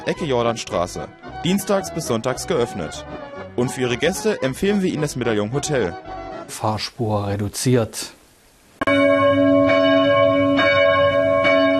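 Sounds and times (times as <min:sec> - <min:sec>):
speech: 0:00.0 - 0:08.2
Christuskirche church bells in Amfort ringing for a service: 0:08.9 - 0:11.7.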